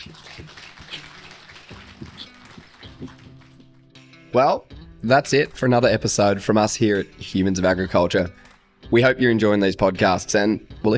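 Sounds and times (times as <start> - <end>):
audience applause: 0.0 - 3.8
speech: 4.4 - 10.9.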